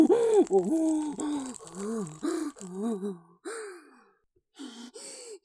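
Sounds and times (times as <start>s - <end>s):
excretion sounds with sound effects: 0.0s - 2.9s.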